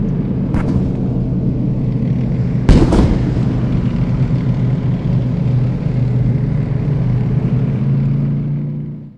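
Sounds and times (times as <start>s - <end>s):
tanks battling: 0.0s - 9.1s.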